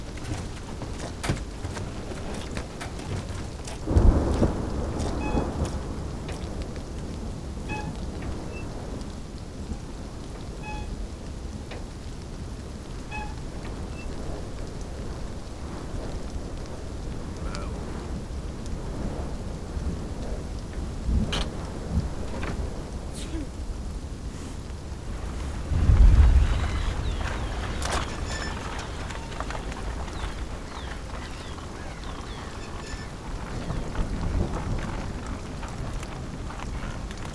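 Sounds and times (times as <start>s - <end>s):
rain in a village: 0.0s - 37.3s.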